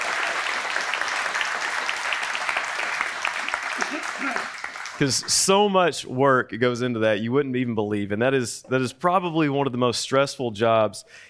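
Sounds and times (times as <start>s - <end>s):
audience applause: 0.0s - 5.6s
speech: 3.8s - 11.2s.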